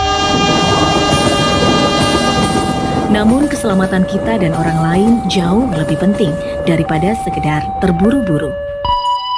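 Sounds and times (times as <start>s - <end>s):
train horn blaring: 0.0s - 5.3s
train passing by: 0.0s - 9.0s
speech: 3.1s - 8.7s.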